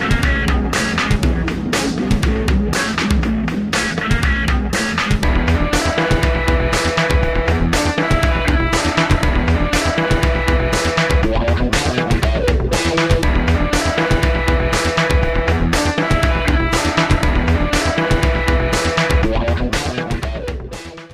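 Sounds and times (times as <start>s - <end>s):
psychedelic music: 0.0s - 21.1s.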